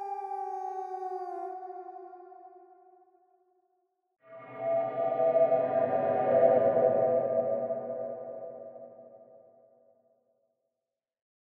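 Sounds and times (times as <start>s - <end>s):
horror sound effect: 4.2s - 9.3s.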